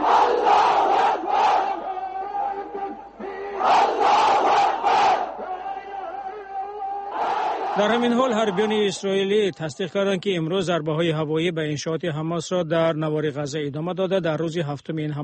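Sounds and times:
protest crowd chanting slogans: 0.0 - 9.0
speech: 7.8 - 15.2.

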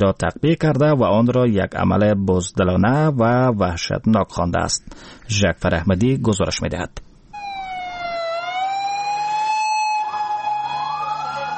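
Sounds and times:
speech: 0.0 - 7.1
ambulance siren wailing: 7.4 - 11.5.

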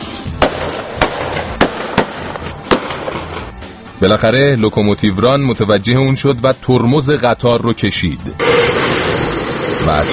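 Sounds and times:
rifle shots fired into the air: 0.4 - 3.5
speech: 4.0 - 8.8, 9.8 - 10.1.

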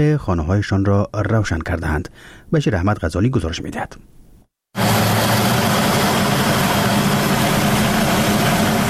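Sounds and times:
speech: 0.0 - 4.2
small electricity-generating turbine in Dowab village, Khinjan district, Baghlan: 4.8 - 8.8.

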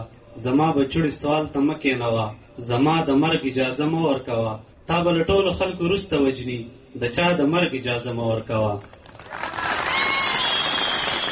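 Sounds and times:
speech: 0.0 - 9.0
crowd applauding at a poetry recital (mushaira): 8.9 - 11.3.

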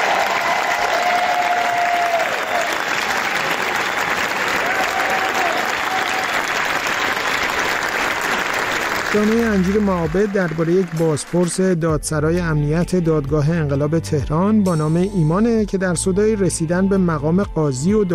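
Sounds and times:
audience applause at Cannes film festival: 0.0 - 11.8
speech: 9.2 - 18.1.

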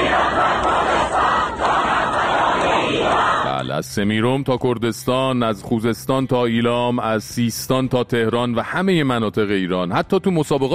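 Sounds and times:
large crowd in Iran chanting slogans of unity: 0.0 - 3.7
speech: 3.8 - 10.7.

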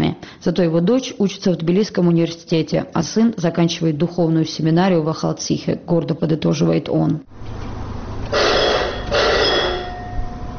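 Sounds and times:
speech: 0.4 - 7.7
quiet hum: 7.3 - 10.5
electric bell at a mine cable car station signalling departure: 8.3 - 10.5.

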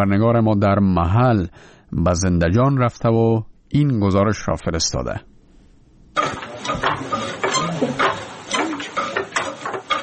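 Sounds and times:
speech: 0.0 - 5.3
wooden silk-weaving loom weaving a silk handkerchief in Zindajan district, Herat: 6.2 - 10.0.

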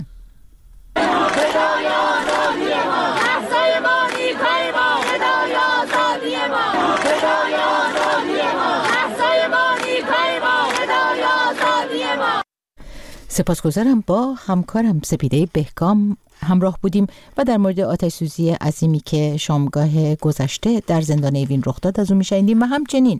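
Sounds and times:
university students chanting in protest: 1.0 - 12.5
speech: 13.4 - 23.1.

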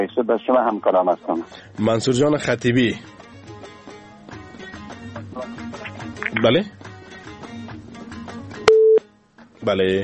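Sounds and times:
speech: 0.0 - 3.3, 6.3 - 6.8, 9.6 - 10.0
telephone busy tone after a dropped call: 8.7 - 9.0.

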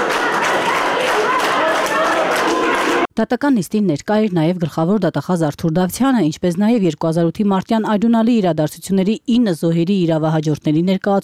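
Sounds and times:
supporters of Kocharyan giving a standing ovation at a court hearing: 0.0 - 3.1
speech: 3.2 - 11.2.

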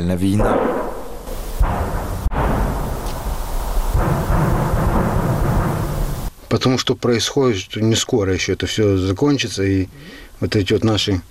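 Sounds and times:
speech: 0.0 - 0.9, 6.5 - 11.2
artillery shell explosions: 0.3 - 6.3.

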